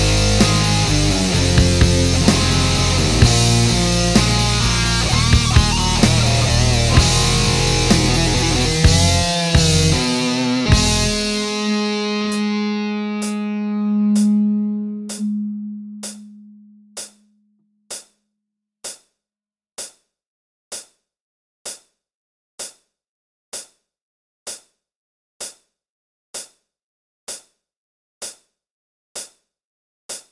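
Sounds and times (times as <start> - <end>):
band jamming without lead guitar: 0.0 - 16.6.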